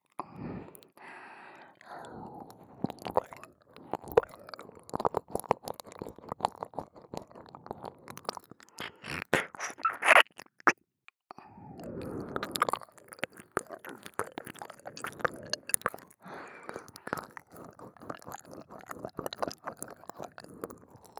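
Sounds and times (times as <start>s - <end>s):
ASMR ear licking: 3.0s - 10.7s, 12.3s - 21.1s.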